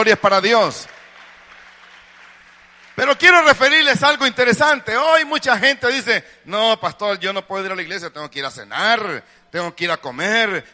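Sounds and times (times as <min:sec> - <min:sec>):
speech: 0:00.0 - 0:00.9, 0:03.0 - 0:10.7
audience clapping: 0:00.0 - 0:04.2.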